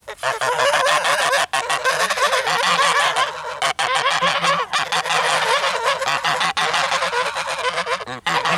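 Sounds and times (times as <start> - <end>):
angry geese hissing: 0.0 - 8.5.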